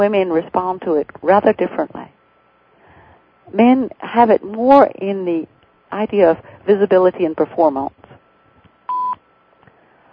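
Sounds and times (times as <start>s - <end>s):
speech: 0.0s - 2.2s, 3.5s - 8.0s
faint hiss: 0.0s - 10.1s
telephone call-waiting beep: 8.9s - 9.2s.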